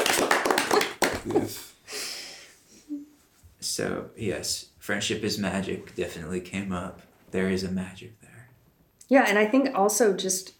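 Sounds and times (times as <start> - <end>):
golf clap: 0.0 - 1.6
speech: 1.2 - 1.7, 3.8 - 8.3, 9.1 - 10.5.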